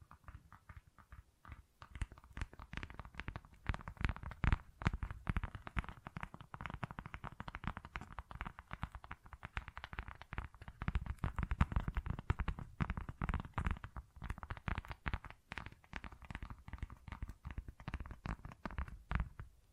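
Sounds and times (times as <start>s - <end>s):
tapping and scratching: 0.0s - 19.4s.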